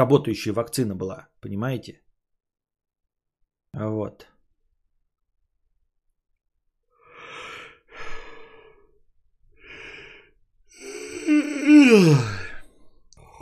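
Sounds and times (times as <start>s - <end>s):
speech: 0.0s - 2.0s, 3.7s - 4.3s, 11.3s - 12.4s
yawning: 10.7s - 13.4s.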